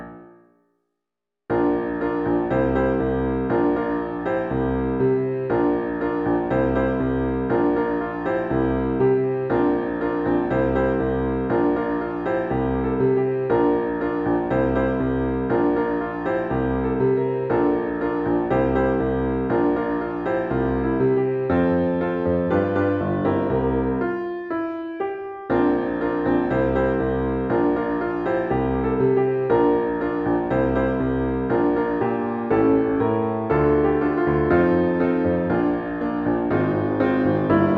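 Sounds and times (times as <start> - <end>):
musical accompaniment: 1.5 - 37.7.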